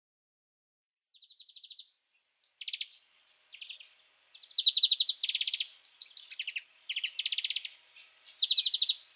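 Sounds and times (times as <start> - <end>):
European greenfinch Chloris chloris twittering song: 2.6 - 9.1.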